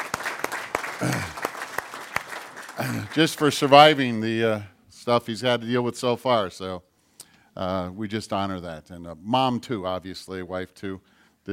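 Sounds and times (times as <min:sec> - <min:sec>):
audience applause: 0:00.0 - 0:04.1
speech: 0:02.8 - 0:06.9, 0:07.6 - 0:11.5.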